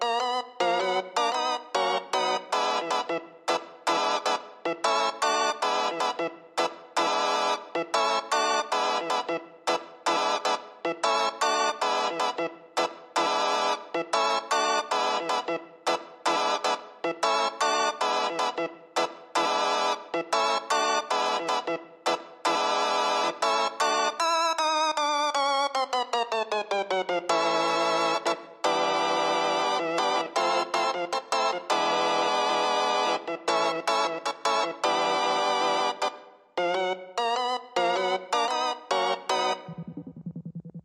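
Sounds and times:
organ: 0:00.0 - 0:40.2
synth sound effects: 0:39.6 - 0:40.8.

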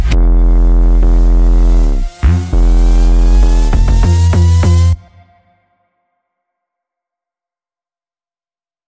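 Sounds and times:
minimal music mix: 0:00.0 - 0:05.6.

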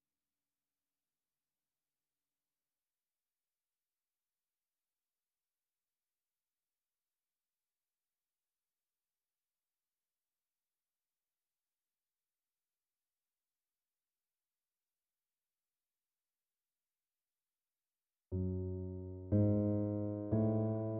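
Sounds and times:
piano piece: 0:18.3 - 0:20.9.

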